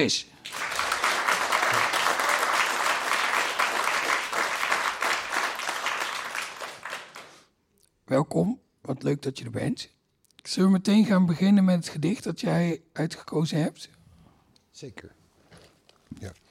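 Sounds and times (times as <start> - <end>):
speech: 0.0 - 0.7, 8.1 - 14.0, 14.8 - 15.2, 16.1 - 16.4
audience applause: 0.4 - 7.5.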